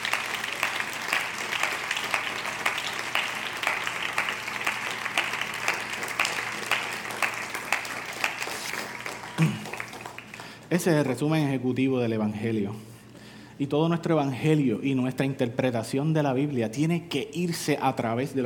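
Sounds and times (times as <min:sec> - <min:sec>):
audience applauding: 0:00.0 - 0:10.9
speech: 0:10.7 - 0:12.9, 0:13.6 - 0:18.4.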